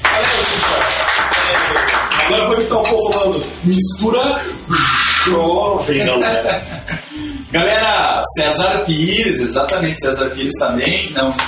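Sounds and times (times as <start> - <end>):
round of applause: 0.0 - 2.5
speech: 2.3 - 6.9, 7.5 - 11.4
laughter: 4.0 - 7.5.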